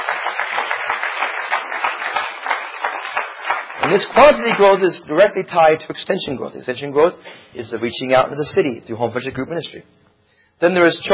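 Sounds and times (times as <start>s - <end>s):
audience clapping hands: 0.0s - 4.9s
speech: 3.9s - 10.0s, 10.6s - 11.1s.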